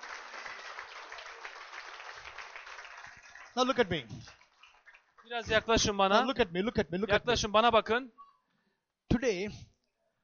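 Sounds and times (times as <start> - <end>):
audience clapping: 0.0 - 6.1
speech: 3.6 - 4.4, 5.2 - 8.2, 9.2 - 9.7.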